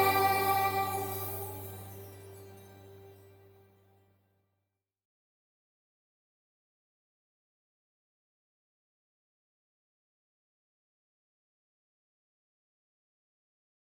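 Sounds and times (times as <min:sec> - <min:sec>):
school song with vocals: 0:00.0 - 0:02.9.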